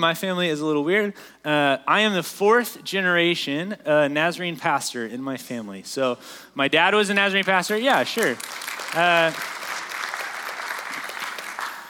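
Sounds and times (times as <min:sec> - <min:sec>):
speech: 0:00.0 - 0:09.5
audience clapping: 0:07.2 - 0:11.8.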